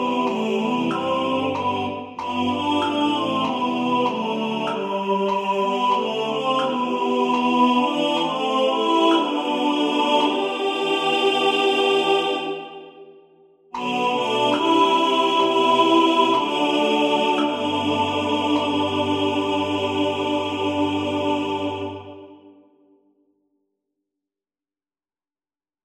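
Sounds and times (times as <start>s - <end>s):
metronome ticking: 0.0s - 9.6s, 13.8s - 20.5s
tenor singing in the foreground: 0.0s - 13.0s, 13.8s - 22.6s.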